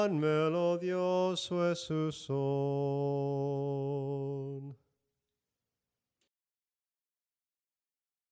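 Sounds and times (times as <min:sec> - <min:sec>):
soprano singing: 0:00.0 - 0:04.8.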